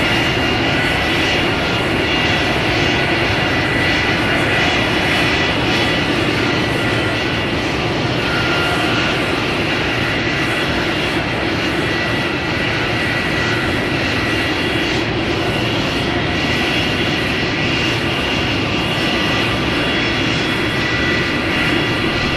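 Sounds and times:
jet engine warming up and taxiing out at an airport: 0.0s - 22.3s.

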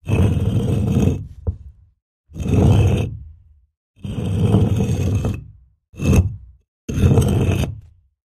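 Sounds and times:
heavy stone being pushed: 0.0s - 1.8s, 2.4s - 3.2s, 4.0s - 7.8s.

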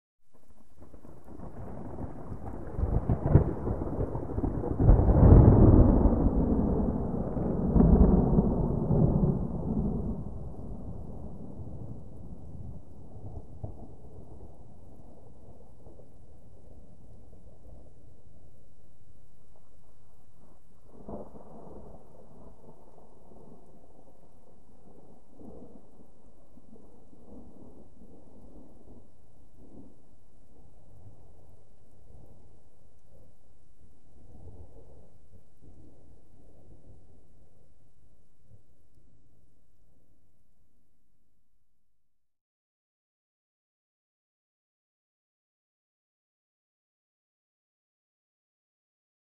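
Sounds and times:
medium distant gentle rolling thunder with long decay: 0.6s - 18.7s, 19.5s - 33.4s, 34.0s - 37.7s.

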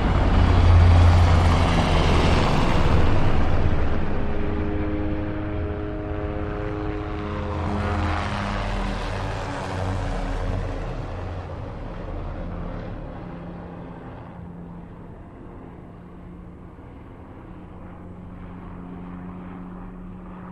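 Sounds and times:
Cobra helicopter flying by: 0.0s - 20.5s.

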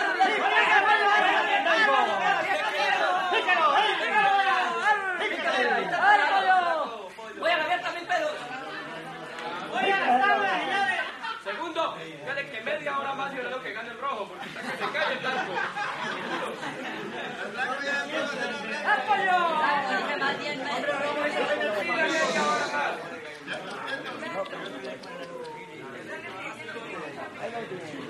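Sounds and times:
male crowd walla at a cockfight: 0.0s - 28.0s
laughter: 8.5s - 11.8s, 14.3s - 26.1s.

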